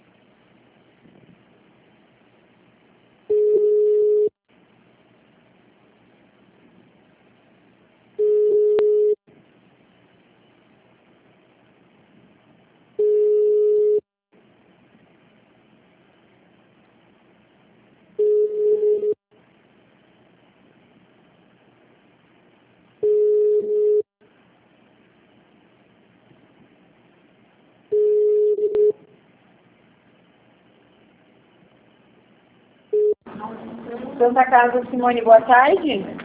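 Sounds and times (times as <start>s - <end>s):
telephone line tone while a call is transferred: 3.3s - 4.3s, 8.2s - 9.2s, 13.0s - 14.0s, 18.2s - 19.2s, 23.0s - 24.1s, 27.9s - 29.0s, 32.9s - 33.2s
speech: 34.2s - 36.2s.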